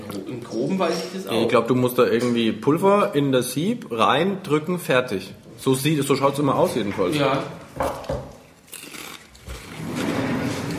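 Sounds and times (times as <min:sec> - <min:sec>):
speech: 0:00.3 - 0:08.1
crunching snack while eating: 0:08.4 - 0:09.8.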